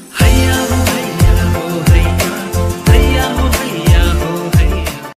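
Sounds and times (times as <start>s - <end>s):
ringtone: 0.1s - 4.9s.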